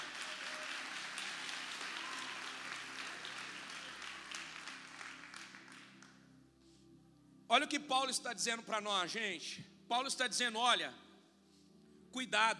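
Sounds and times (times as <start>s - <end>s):
audience applauding: 0.0s - 6.2s
speech: 7.5s - 11.0s, 12.1s - 12.5s.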